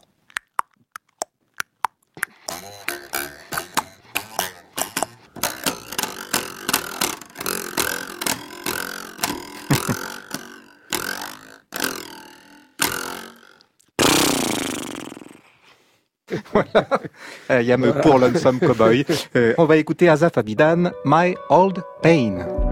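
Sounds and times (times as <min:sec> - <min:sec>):
percussion instruments imitating a horse: 0:00.0 - 0:15.4
laughter: 0:09.6 - 0:10.0, 0:16.3 - 0:19.6
speech: 0:16.4 - 0:22.6.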